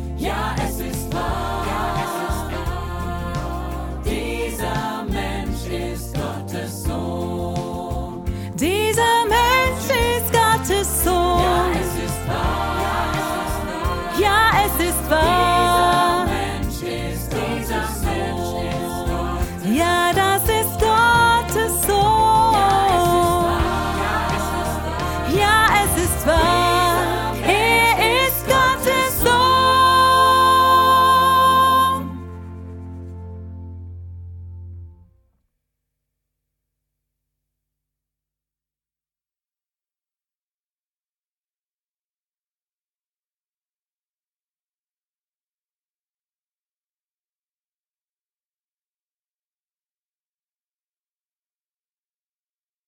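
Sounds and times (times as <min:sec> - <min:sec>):
soprano part singing: 0:00.2 - 0:32.5.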